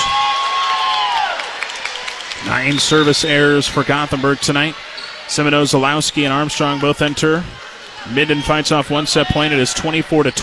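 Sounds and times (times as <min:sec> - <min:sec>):
home fans clapping at a volleyball match in Gothenburg: 0:00.0 - 0:04.5
speech: 0:02.5 - 0:10.4.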